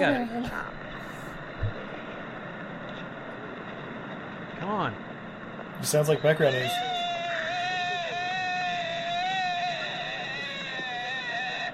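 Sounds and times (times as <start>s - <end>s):
speech: 0.0s - 0.8s, 4.6s - 5.0s, 5.8s - 6.9s
deer call: 5.9s - 11.7s.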